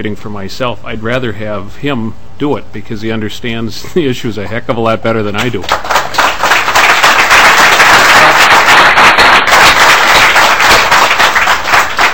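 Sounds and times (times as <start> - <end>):
speech: 0.0 - 5.9
crowd applauding: 5.6 - 12.1.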